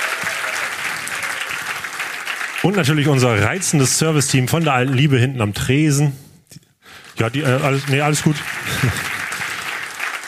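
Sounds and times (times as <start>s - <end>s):
audience applause: 0.0s - 3.9s, 7.1s - 10.2s
speech: 2.6s - 6.2s, 7.2s - 9.1s
laughter: 7.6s - 9.8s.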